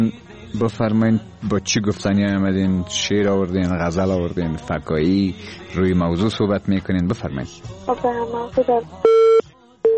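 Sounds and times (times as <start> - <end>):
speech: 0.0 - 9.3
phone line busy tone after a dropped call-in call: 9.0 - 9.9.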